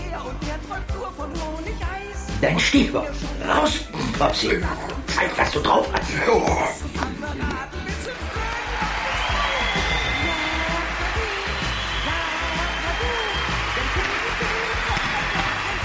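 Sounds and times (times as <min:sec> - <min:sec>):
speech: 0:00.1 - 0:07.7
audience applauding during a song: 0:07.0 - 0:15.8.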